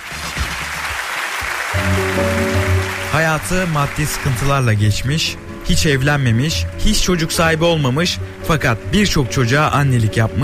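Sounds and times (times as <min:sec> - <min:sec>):
applause: 0:00.0 - 0:04.7
speech: 0:03.2 - 0:10.4.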